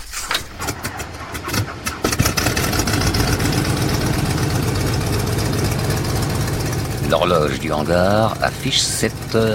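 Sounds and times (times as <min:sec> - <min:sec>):
propeller airplane engine starting and roaring: 0:00.0 - 0:09.5
speech: 0:07.2 - 0:09.5.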